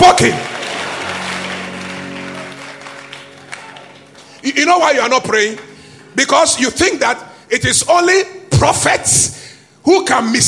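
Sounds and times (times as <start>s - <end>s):
audience clapping hands: 0.0s - 6.7s
speech: 0.2s - 0.5s, 4.5s - 10.4s.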